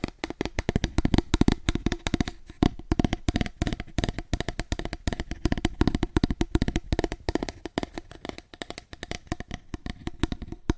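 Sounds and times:
fast aggressive cardboard tapping: 0.0s - 10.7s.

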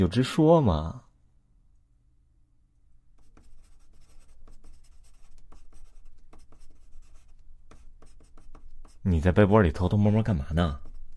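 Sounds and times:
speech: 0.0s - 1.0s, 9.0s - 10.8s
pen scratching on paper: 3.1s - 9.1s, 10.4s - 11.1s.

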